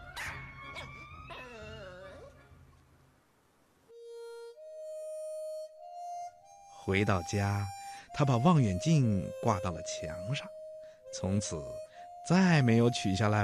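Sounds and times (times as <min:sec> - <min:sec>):
dog barking with high-pitched yips: 0:00.0 - 0:01.1
speech: 0:06.9 - 0:13.4.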